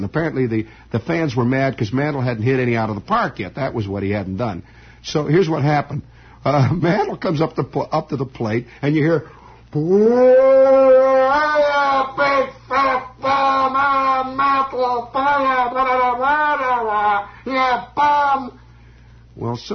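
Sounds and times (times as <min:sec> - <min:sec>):
speech: 0:00.0 - 0:11.4, 0:19.4 - 0:19.7
single voice imitating a booing stadium crowd: 0:09.8 - 0:18.6.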